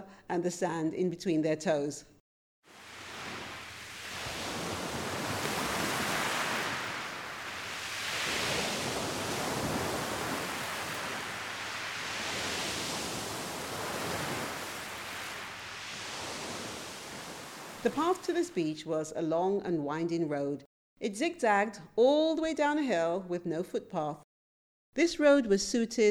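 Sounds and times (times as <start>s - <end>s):
speech: 0.1s - 2.2s, 17.8s - 24.3s, 25.0s - 26.0s
waves washing onto a cove beach: 2.7s - 18.5s.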